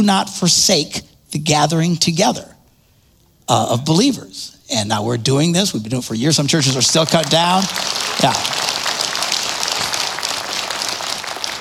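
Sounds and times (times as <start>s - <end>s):
speech: 0.0s - 2.6s, 3.5s - 8.8s
audience applause: 6.6s - 11.6s.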